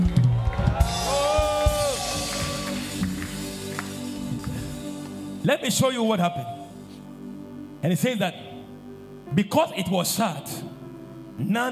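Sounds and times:
crowd clapping: 0:00.0 - 0:05.2
rising whoops and sustained cries: 0:00.2 - 0:02.9
speech: 0:05.4 - 0:06.6, 0:07.8 - 0:08.5, 0:09.3 - 0:10.7, 0:11.4 - 0:11.7.

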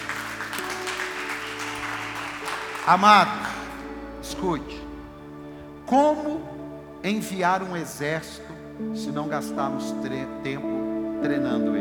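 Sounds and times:
audience applause: 0:00.0 - 0:04.2
speech: 0:02.9 - 0:03.5, 0:04.3 - 0:04.8, 0:05.9 - 0:11.7.

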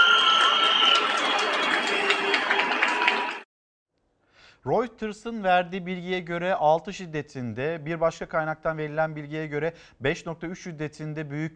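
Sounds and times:
whistling: 0:00.0 - 0:01.6
applause from balconies: 0:00.0 - 0:03.5
speech: 0:04.6 - 0:11.5.

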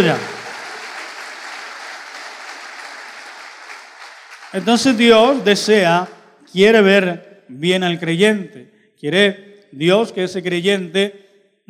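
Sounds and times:
speech: 0:00.0 - 0:00.3, 0:04.5 - 0:11.6
audience applauding: 0:00.0 - 0:06.2.

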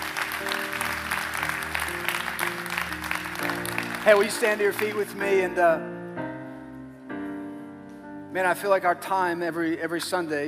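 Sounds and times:
audience clapping: 0:00.0 - 0:05.3
speech: 0:04.0 - 0:05.9, 0:08.4 - 0:10.4.

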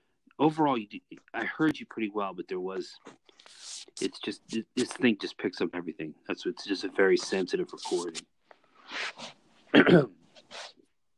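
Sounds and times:
speech: 0:00.4 - 0:10.8
person sneezing: 0:07.8 - 0:08.2, 0:08.9 - 0:10.8.

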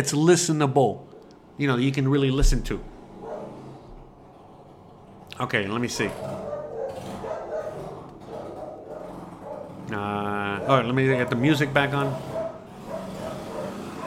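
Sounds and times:
speech: 0:00.0 - 0:03.0, 0:05.4 - 0:06.5, 0:09.9 - 0:12.3
dog barking at a passing motorcycle: 0:03.2 - 0:03.6, 0:06.2 - 0:09.9, 0:10.5 - 0:14.0.

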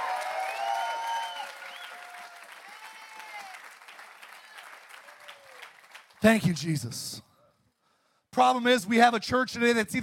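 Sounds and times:
audience clapping: 0:00.0 - 0:06.7
speech: 0:06.2 - 0:07.3, 0:08.4 - 0:10.0.

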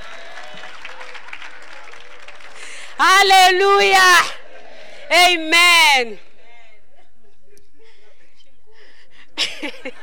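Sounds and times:
audience clapping hands: 0:00.0 - 0:06.1
speech: 0:03.0 - 0:04.4, 0:05.1 - 0:06.2
laughter: 0:03.8 - 0:10.0.

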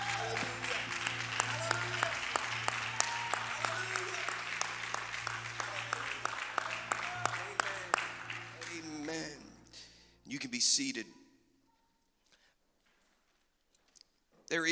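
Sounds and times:
audience clapping hands: 0:00.0 - 0:09.9
speech: 0:10.8 - 0:11.2, 0:14.5 - 0:14.7.

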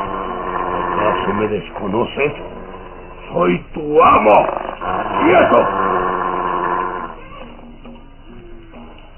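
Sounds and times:
mastiff dog growling: 0:00.0 - 0:07.2
speech: 0:01.3 - 0:06.0.

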